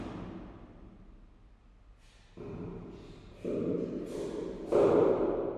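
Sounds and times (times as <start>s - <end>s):
footsteps in an empty hallway: 1.9s - 5.4s.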